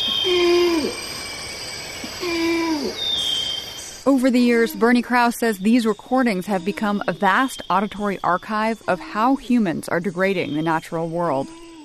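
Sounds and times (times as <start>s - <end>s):
orangutans calling in a Sumatran rainforest: 0.0s - 11.8s
speech: 4.1s - 11.8s.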